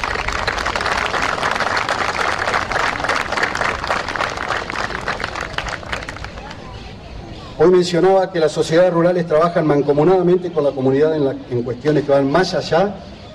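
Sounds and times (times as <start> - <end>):
audience applause: 0.0 - 6.6
speech: 7.6 - 13.1.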